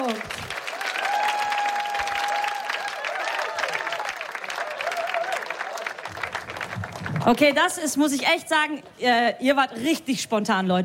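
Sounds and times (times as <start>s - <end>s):
audience applause: 0.0s - 7.6s
speech: 7.3s - 10.8s.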